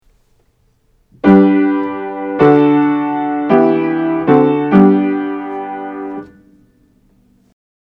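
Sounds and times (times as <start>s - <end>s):
root position triad chords: 1.2s - 6.5s.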